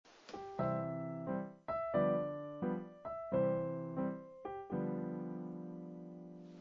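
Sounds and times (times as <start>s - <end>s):
jazz music: 0.1s - 5.0s.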